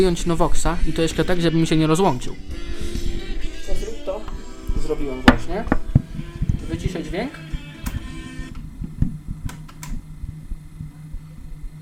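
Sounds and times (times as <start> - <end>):
speech: 0.0 - 2.8, 4.9 - 5.8, 6.7 - 7.4
cassette tape deck mechanism running: 4.2 - 11.1.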